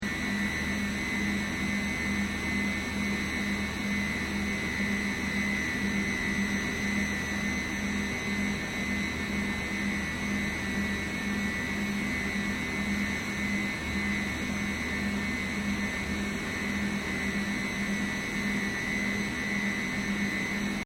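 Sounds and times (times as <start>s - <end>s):
hospital plant room air conditioning machinery: 0.0s - 20.8s.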